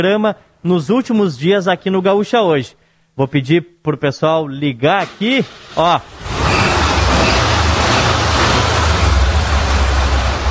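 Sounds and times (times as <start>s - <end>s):
speech: 0.0s - 6.2s
Volkswagen Beetle engine running: 5.0s - 10.4s.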